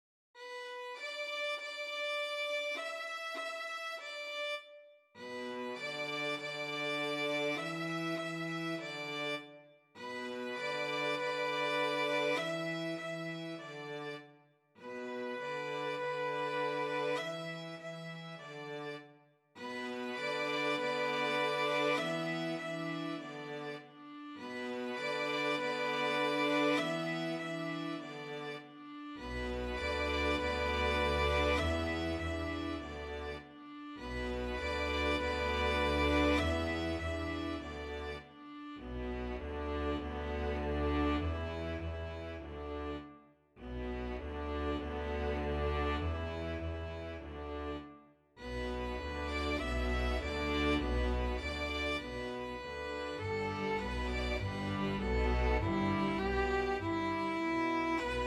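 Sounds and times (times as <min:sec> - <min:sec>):
string quintet playing: 0:00.4 - 0:58.2.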